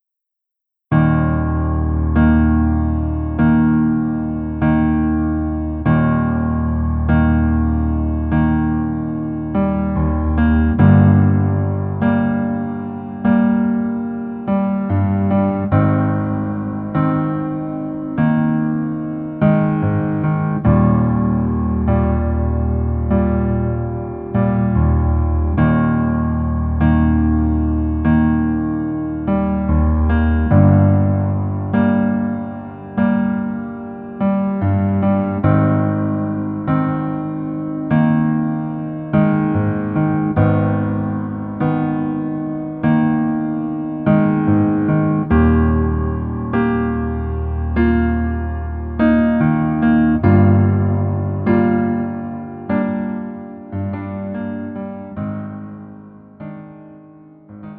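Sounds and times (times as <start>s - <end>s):
piano music: 0.9s - 57.7s.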